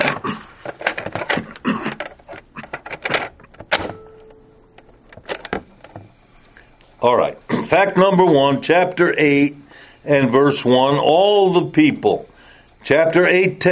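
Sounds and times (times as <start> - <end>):
cassette tape being turned over in a recorder: 0.0 - 6.1
cassette recorder mechanical hum: 0.0 - 13.7
speech: 7.0 - 13.7.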